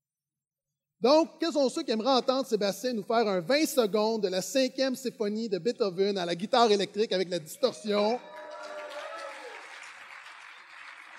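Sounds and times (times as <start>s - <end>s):
speech: 1.0s - 8.4s
audience applause: 8.1s - 11.1s
person whooping: 8.2s - 9.7s.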